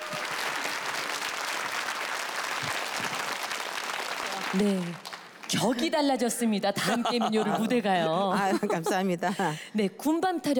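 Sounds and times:
crowd clapping: 0:00.0 - 0:06.0
speech: 0:04.5 - 0:10.5.

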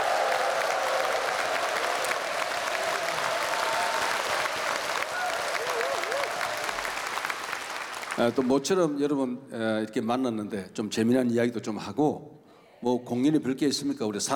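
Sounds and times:
large audience applauding: 0:00.0 - 0:08.8
speech: 0:08.2 - 0:14.3.

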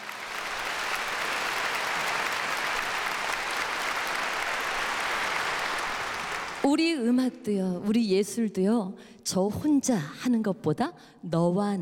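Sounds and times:
audience applause: 0:00.0 - 0:06.7
speech: 0:06.7 - 0:11.7.

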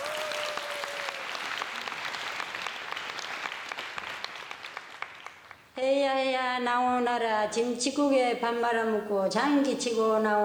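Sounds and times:
audience applause: 0:00.0 - 0:05.6
speech: 0:05.8 - 0:10.4.

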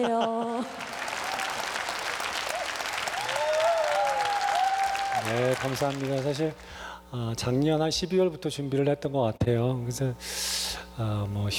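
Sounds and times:
speech: 0:00.0 - 0:01.0, 0:05.2 - 0:11.5
audience applause: 0:00.6 - 0:06.7.

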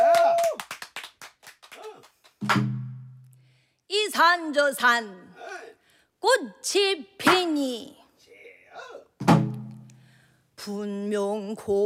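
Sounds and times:
audience clapping for performer: 0:00.0 - 0:02.7
speech: 0:02.5 - 0:02.7, 0:04.2 - 0:05.2, 0:06.2 - 0:08.0, 0:10.6 - 0:11.8.

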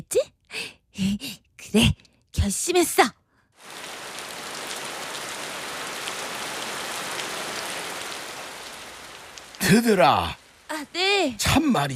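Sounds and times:
speech: 0:01.0 - 0:03.2, 0:09.7 - 0:11.9
heavy rain pouring down: 0:03.6 - 0:11.9.

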